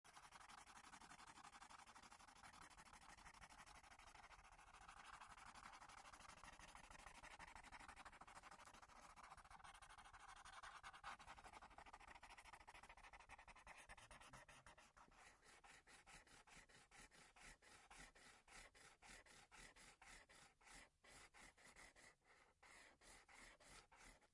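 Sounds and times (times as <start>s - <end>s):
pen colouring: 0.0s - 24.3s.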